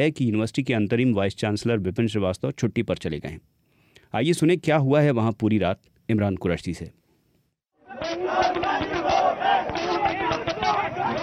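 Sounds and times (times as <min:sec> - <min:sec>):
speech: 0:00.0 - 0:07.0
students chanting and shouting in nighttime campus protest: 0:07.8 - 0:11.2.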